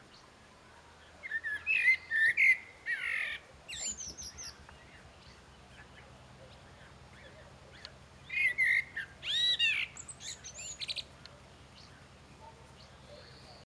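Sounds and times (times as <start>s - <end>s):
common blackbird song, fluted whistled notes and high squeaky flourish: 1.2s - 11.1s.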